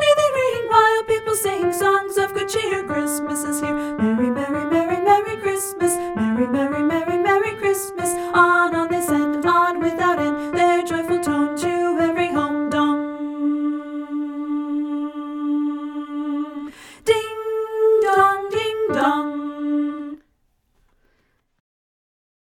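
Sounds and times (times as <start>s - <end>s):
soprano voice singing: 0.0s - 20.2s.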